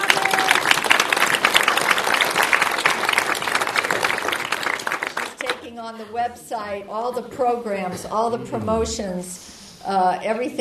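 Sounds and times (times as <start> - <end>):
audience applauding: 0.0 - 5.6
speech: 6.2 - 10.5.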